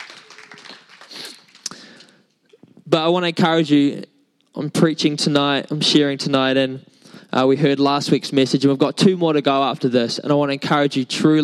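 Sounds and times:
audience clapping together: 0.0s - 2.2s
speech: 2.9s - 11.4s.

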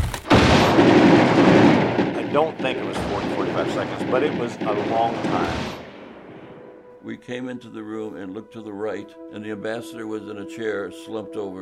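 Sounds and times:
dense burst of gunfire: 0.0s - 6.6s
speech: 2.3s - 5.8s, 7.0s - 11.6s.

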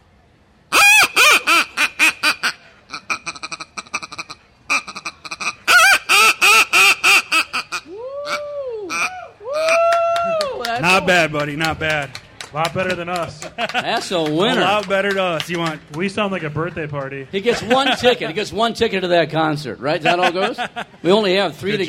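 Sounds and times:
goose call imitating a honking goose: 0.7s - 9.8s
laughter: 9.5s - 15.8s, 17.4s - 18.4s, 19.9s - 21.8s
speech: 11.1s - 21.8s.

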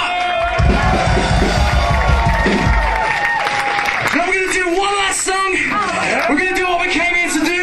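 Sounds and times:
audience applause: 0.1s - 7.5s.

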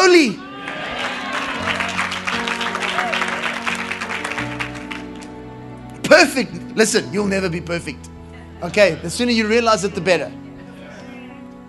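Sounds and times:
audience applause: 0.6s - 5.3s
speech: 6.4s - 10.4s.

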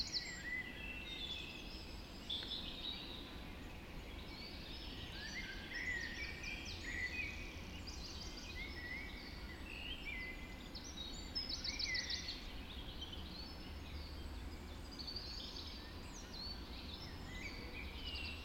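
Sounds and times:
birds singing at dawn: 0.0s - 18.4s.

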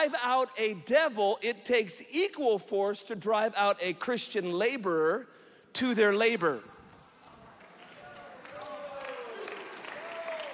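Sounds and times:
speech: 0.0s - 6.8s
part of audience clapping: 6.8s - 10.5s.

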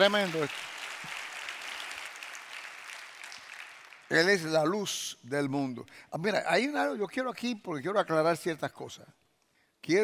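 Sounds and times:
speech: 0.0s - 0.7s, 4.1s - 9.2s, 9.8s - 10.0s
audience applause: 0.0s - 4.1s.

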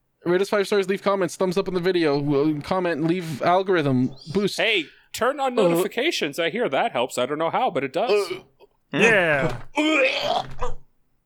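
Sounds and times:
speech: 0.3s - 10.8s
man imitating a cat coughing up a hairball: 8.1s - 10.8s.

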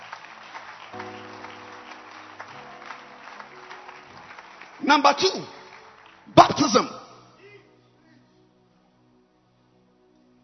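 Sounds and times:
congregation clapping hands for the pastor: 0.0s - 7.6s
speech: 4.9s - 5.6s, 6.3s - 7.0s.

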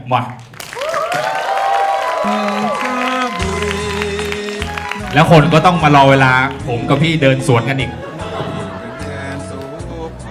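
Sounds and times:
speech: 0.1s - 0.6s, 2.2s - 3.8s, 5.1s - 8.1s
audience applause: 0.4s - 7.1s
audience cheering: 0.6s - 9.7s
laughter: 2.2s - 10.1s.

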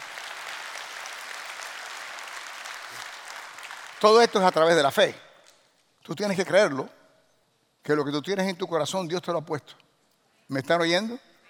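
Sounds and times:
audience applause: 0.0s - 4.5s
speech: 4.0s - 5.2s, 6.1s - 7.0s, 7.8s - 9.8s, 10.5s - 11.3s.

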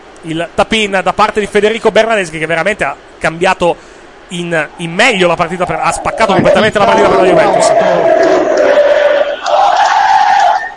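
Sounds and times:
speech: 0.2s - 8.6s
football fans cheering and chanting in a stadium: 4.7s - 10.7s.

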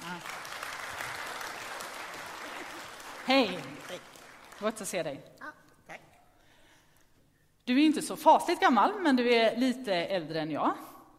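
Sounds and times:
audience applause: 0.0s - 4.7s
speech: 3.3s - 5.4s, 7.7s - 11.1s.

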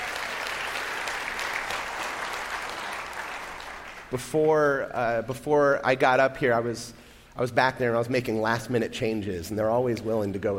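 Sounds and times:
audience applause: 0.0s - 4.2s
speech: 4.1s - 10.5s.

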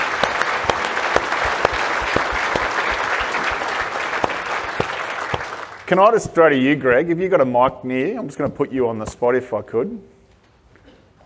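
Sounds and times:
audience applause: 0.0s - 5.9s
speech: 5.9s - 10.1s.

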